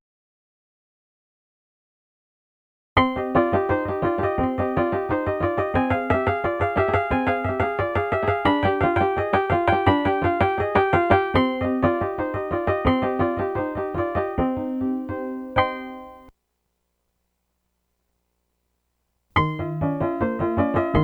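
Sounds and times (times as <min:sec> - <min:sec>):
Mel scale music: 0:03.0 - 0:16.3, 0:19.4 - 0:21.0.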